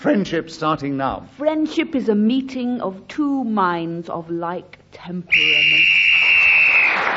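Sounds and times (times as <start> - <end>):
speech: 0.0 - 5.9
final whistle ending the round: 5.3 - 7.0.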